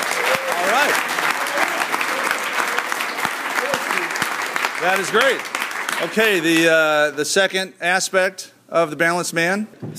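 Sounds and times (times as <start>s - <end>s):
crowd applause: 0.0s - 6.9s
speech: 4.8s - 9.9s.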